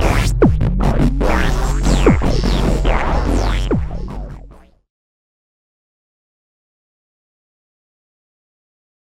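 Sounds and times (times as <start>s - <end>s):
Kaossilator synthesizer noodling: 0.0s - 4.9s.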